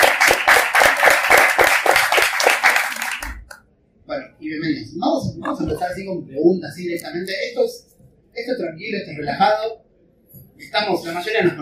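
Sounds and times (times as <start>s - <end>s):
audience applause: 0.0s - 3.5s
speech: 5.6s - 9.8s, 10.6s - 11.6s.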